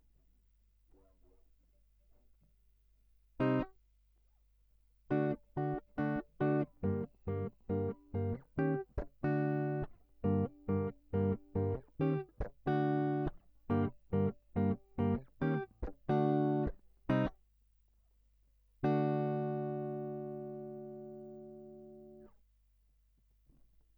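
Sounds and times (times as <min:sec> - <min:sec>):
guitar line: 0:03.4 - 0:03.7, 0:05.1 - 0:17.3, 0:18.8 - 0:22.2.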